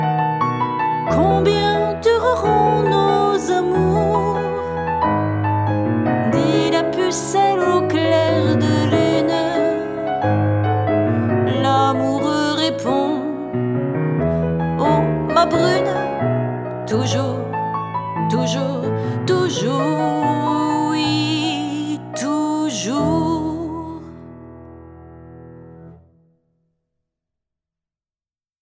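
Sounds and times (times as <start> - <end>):
piano: 0.0 - 26.8
person singing a chanson: 1.1 - 5.0, 6.0 - 10.4, 11.0 - 13.6, 14.8 - 24.2.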